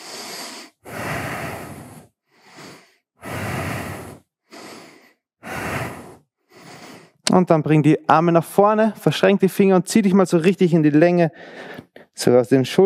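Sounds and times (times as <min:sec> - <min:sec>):
deep deliberate breathing during a chest-opening arm stretch: 0:00.0 - 0:07.2, 0:11.4 - 0:12.2
speech: 0:07.4 - 0:12.8.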